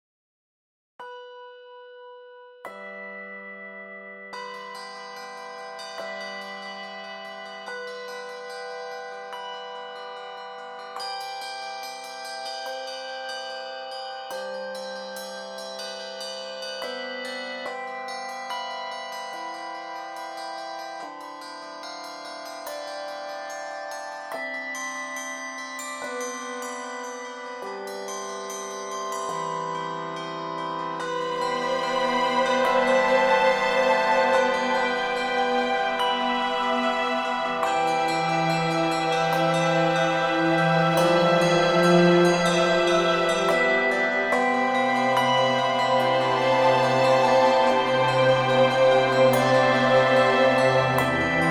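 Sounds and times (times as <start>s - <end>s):
bells shimmering on water: 2.3s - 51.4s.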